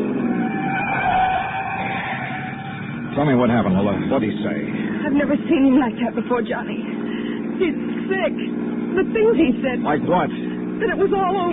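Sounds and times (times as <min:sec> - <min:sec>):
car engine roaring speeding up a steep twisting mountain road: 0:00.0 - 0:11.5
tyres squealing: 0:00.2 - 0:03.0
speech: 0:03.2 - 0:07.0, 0:07.6 - 0:11.5.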